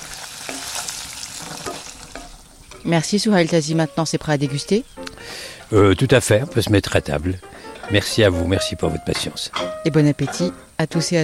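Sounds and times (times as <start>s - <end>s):
food sizzling in a cast iron pan at low temperature: 0.0s - 3.5s, 7.4s - 11.2s
speech: 2.8s - 11.2s.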